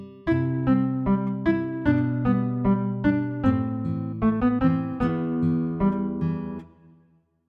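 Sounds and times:
background music: 0:00.3 - 0:06.9.

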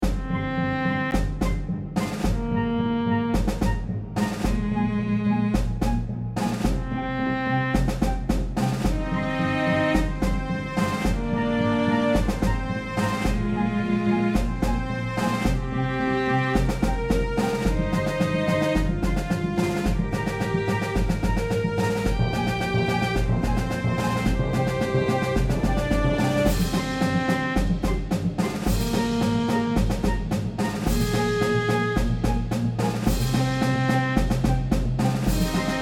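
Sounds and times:
orchestra: 0:00.0 - 0:35.8.

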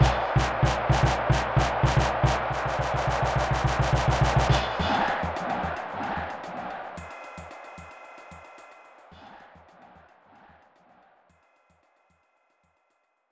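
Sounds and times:
soccer game ambience: 0:00.0 - 0:10.6.

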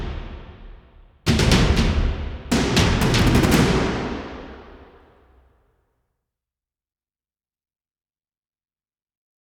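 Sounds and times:
combat music: 0:00.0 - 0:05.3.

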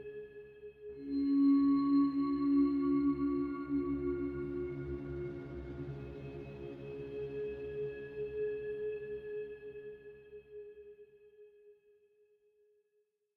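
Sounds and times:
synth pads submix: 0:01.0 - 0:07.7.

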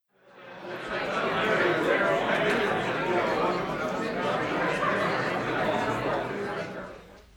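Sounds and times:
medium crowd: 0:00.1 - 0:07.3
laughter: 0:00.4 - 0:07.2.

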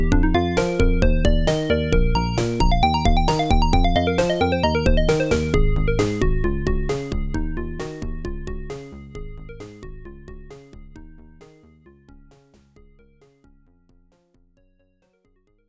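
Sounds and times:
nursery rhyme melody: 0:00.0 - 0:08.1.

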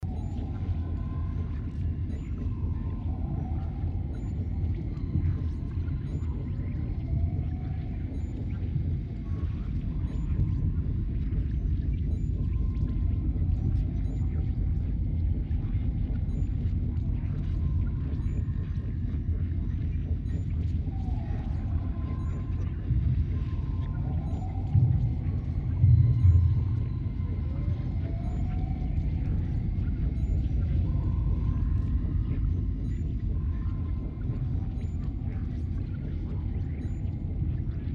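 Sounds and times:
primary control module ambience: 0:00.0 - 0:37.9.

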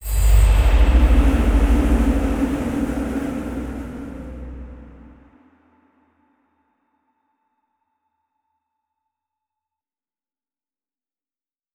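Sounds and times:
wind in a temple room: 0:00.0 - 0:05.7.

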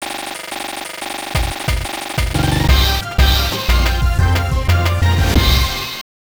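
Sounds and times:
game stage clear jingle: 0:02.4 - 0:06.0.

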